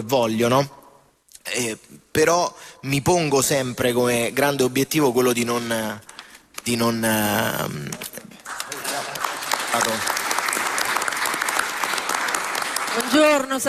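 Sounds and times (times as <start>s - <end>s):
speech: 0.0s - 0.8s, 1.5s - 8.3s, 9.8s - 10.2s, 13.0s - 13.6s
audience applause welcoming a guest at a public event: 8.4s - 13.6s.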